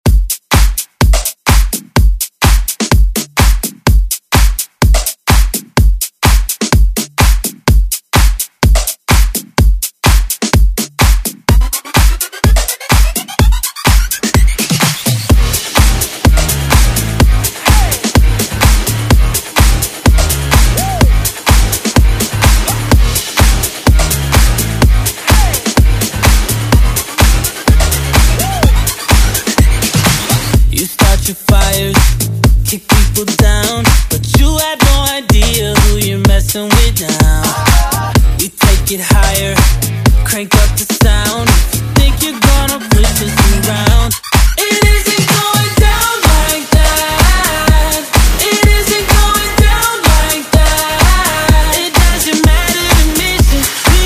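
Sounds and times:
dance music: 0.0s - 54.0s.

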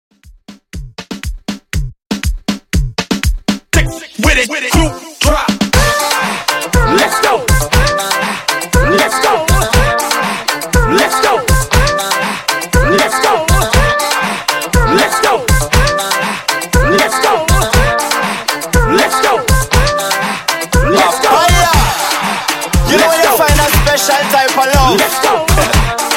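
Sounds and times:
hype reggaeton beat: 0.1s - 26.1s.

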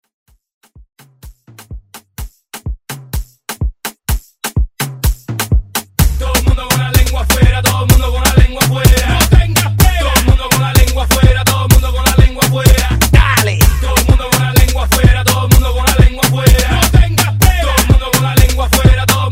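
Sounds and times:
Latin hype dance music: 0.7s - 19.3s.

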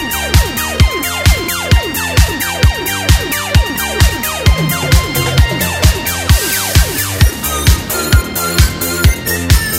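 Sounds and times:
80s drum machine beat: 0.0s - 9.6s.

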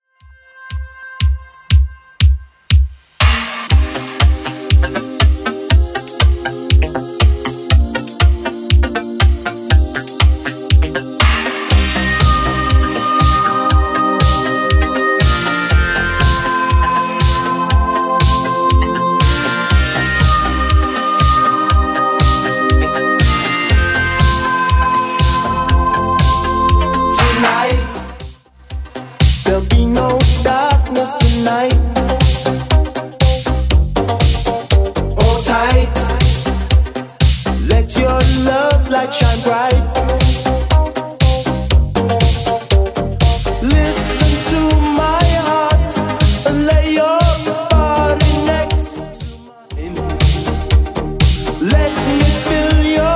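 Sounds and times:
80s drum machine beat at 120 bpm: 0.7s - 53.1s.

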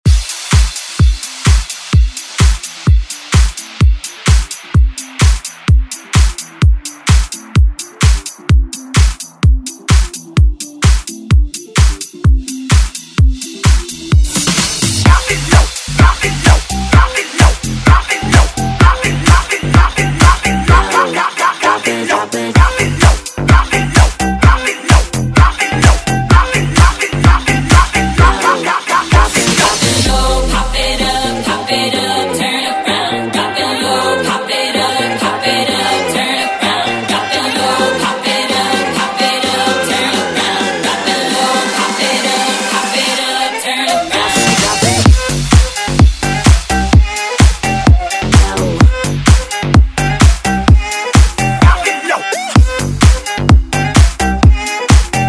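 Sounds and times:
party break music: 0.0s - 55.2s.

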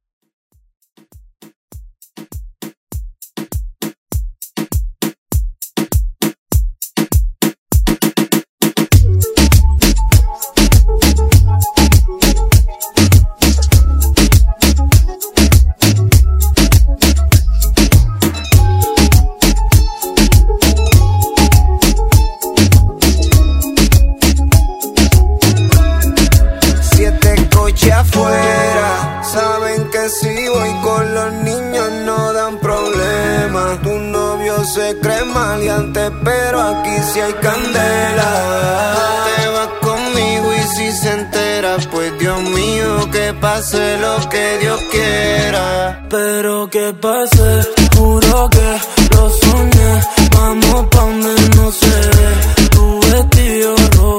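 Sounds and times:
reggaeton music: 1.0s - 54.1s.

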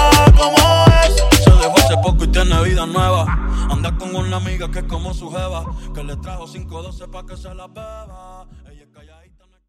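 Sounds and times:
funk drum break at 100 bpm: 0.0s - 4.0s.

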